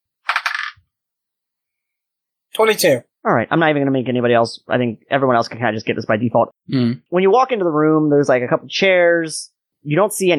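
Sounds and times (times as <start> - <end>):
dice tumbling across a hard surface: 0.2 - 0.8
speech: 2.6 - 10.3.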